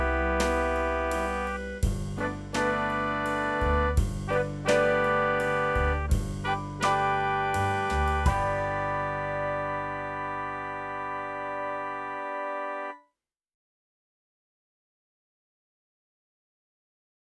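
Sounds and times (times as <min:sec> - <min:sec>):
saxophone playing: 0:00.0 - 0:13.0.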